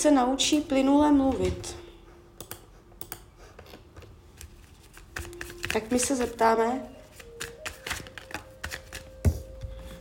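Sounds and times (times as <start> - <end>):
speech: 0.0 - 1.8, 5.7 - 6.9
playing cards being shuffled and handled: 4.4 - 6.4, 7.0 - 9.9.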